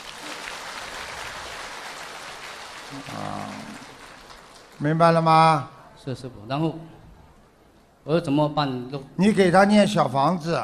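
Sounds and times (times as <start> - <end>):
crowd applause: 0.0 - 5.0
speech: 2.9 - 3.8, 4.8 - 7.0, 8.0 - 10.6.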